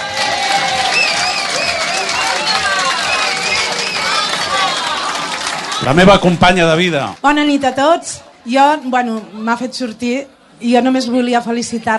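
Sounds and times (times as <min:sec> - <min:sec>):
audience applause: 0:00.0 - 0:07.2
speech: 0:05.8 - 0:11.9.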